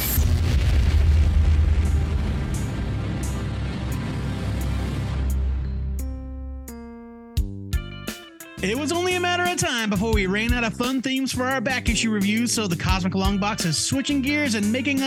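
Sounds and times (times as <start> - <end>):
crackling energy burst sound effect: 0.0 - 5.5
speech: 8.6 - 15.0.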